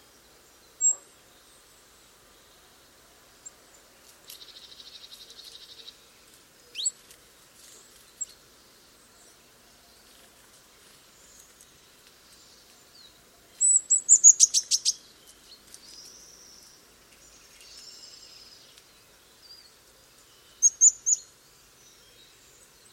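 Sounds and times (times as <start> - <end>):
Eurasian blue tit song: 0.0 - 2.6, 3.4 - 10.2, 10.8 - 22.9.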